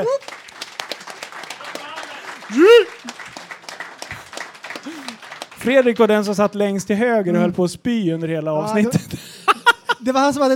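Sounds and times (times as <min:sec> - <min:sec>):
speech: 0:00.0 - 0:00.4, 0:02.5 - 0:03.2, 0:05.6 - 0:09.2, 0:10.0 - 0:10.5
audience applause: 0:00.0 - 0:06.7
laughter: 0:08.8 - 0:10.2.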